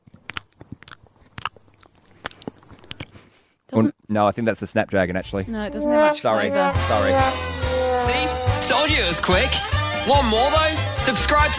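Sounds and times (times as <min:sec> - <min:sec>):
biting and chewing fresh-picked thyme with soil on it: 0:00.0 - 0:03.7
speech: 0:03.8 - 0:11.5.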